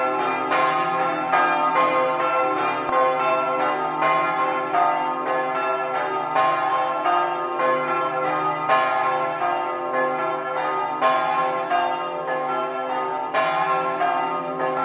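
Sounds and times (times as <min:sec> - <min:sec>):
bells ringing: 0:00.0 - 0:14.8.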